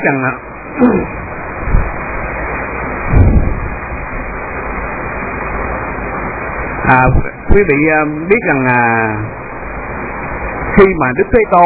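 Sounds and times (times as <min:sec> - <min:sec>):
speech: 0:00.0 - 0:01.8, 0:06.8 - 0:09.4, 0:10.8 - 0:11.6
heavy rain outside: 0:00.0 - 0:11.6
dull low thumps: 0:01.0 - 0:02.3, 0:03.0 - 0:04.5.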